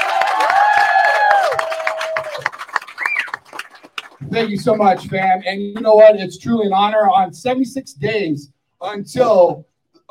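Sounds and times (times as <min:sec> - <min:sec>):
cheering voices: 0:00.0 - 0:03.4
audience applause: 0:00.0 - 0:05.0
shrill whistles: 0:02.9 - 0:03.4
speech: 0:04.4 - 0:10.0.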